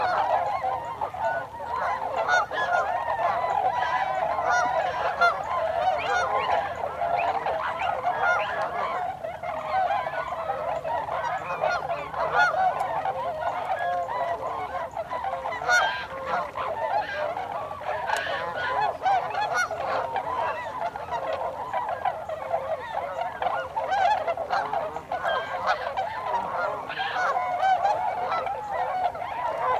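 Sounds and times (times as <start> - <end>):
tundra swan flock calling: 0.0 - 29.7.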